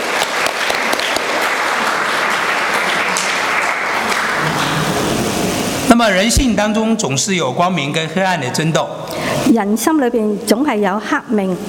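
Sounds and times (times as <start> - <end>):
audience applause: 0.0 - 5.8
speech: 5.9 - 11.6.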